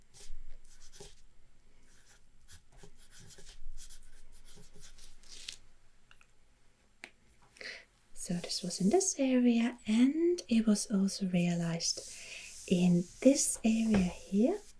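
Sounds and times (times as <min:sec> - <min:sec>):
pen writing a note: 0:00.7 - 0:01.2, 0:02.0 - 0:05.0
speech: 0:08.3 - 0:14.7.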